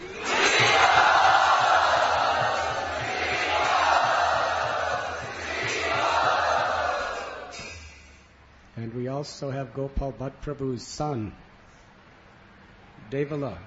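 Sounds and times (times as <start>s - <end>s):
temple crowd of Hare Krishna devotees cheering a welcome: 0.0s - 7.9s
speech: 9.3s - 11.5s, 13.1s - 13.6s.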